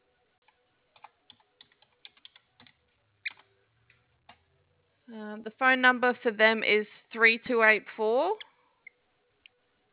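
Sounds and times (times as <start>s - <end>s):
low steady hum: 0.0s - 9.9s
typing on a computer keyboard: 0.4s - 4.4s
speech: 5.1s - 8.5s.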